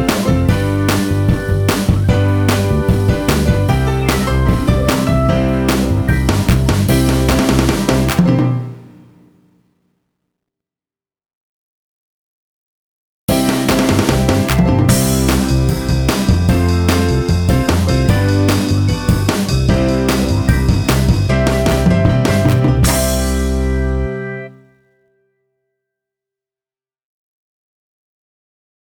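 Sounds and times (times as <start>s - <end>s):
karaoke backing track: 0.0s - 8.6s, 13.3s - 24.5s.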